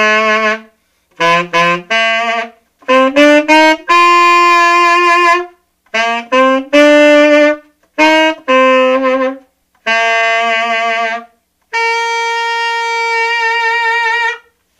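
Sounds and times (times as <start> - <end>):
Buescher Gold Bee tenor saxophone: 0.0 - 14.7.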